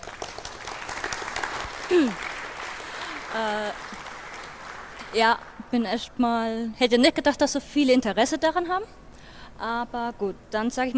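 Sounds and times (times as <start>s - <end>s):
audience clapping: 0.0s - 5.7s
speech: 1.9s - 2.3s, 3.4s - 3.9s, 5.1s - 9.0s, 9.6s - 10.9s.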